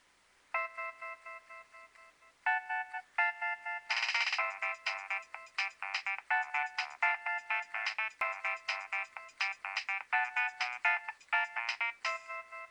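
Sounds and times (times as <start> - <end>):
Nokia 3100 ringtone: 0.6 - 12.6.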